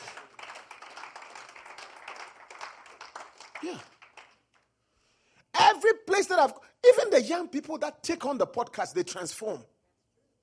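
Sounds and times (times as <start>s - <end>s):
crowd clapping: 0.0s - 4.7s
speech: 3.6s - 4.0s, 5.8s - 9.7s.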